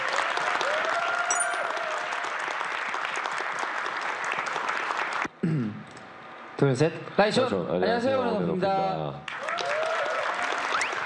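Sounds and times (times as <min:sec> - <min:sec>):
audience applause: 0:00.0 - 0:05.3, 0:09.3 - 0:11.0
speech: 0:05.4 - 0:05.8, 0:06.6 - 0:09.3.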